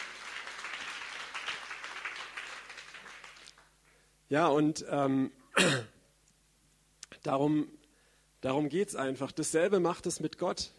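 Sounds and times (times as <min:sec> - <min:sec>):
audience applause: 0:00.0 - 0:03.7
speech: 0:04.3 - 0:05.9, 0:07.2 - 0:07.8, 0:08.4 - 0:10.7.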